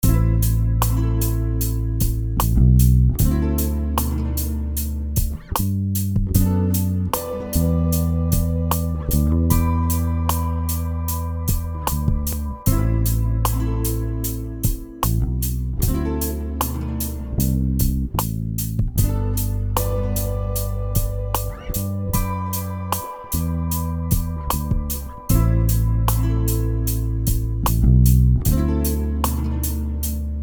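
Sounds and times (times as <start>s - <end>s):
bass: 0.0s - 30.4s.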